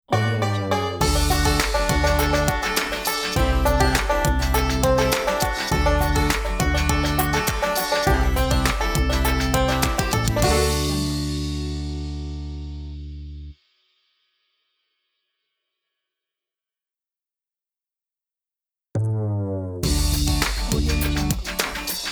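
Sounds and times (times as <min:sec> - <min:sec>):
funky bluegrass logo jingle: 0:00.1 - 0:13.0, 0:19.8 - 0:22.1.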